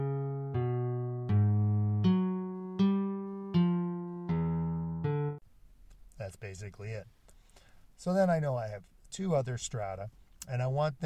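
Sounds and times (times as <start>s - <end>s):
eight-tone melodic phrase: 0.0s - 5.4s
speech: 6.4s - 7.2s, 8.0s - 11.0s.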